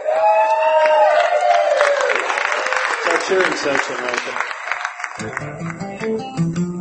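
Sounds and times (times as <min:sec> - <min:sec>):
sustained whoop: 0:00.0 - 0:02.2
audience clapping and cheering at an evening community gathering: 0:00.0 - 0:06.7
speech: 0:03.3 - 0:04.6, 0:05.2 - 0:05.8.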